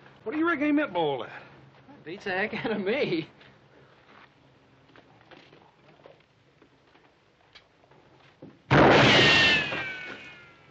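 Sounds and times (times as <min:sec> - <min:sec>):
speech: 0:00.2 - 0:01.4, 0:02.0 - 0:03.4
gunshot: 0:08.7 - 0:10.5.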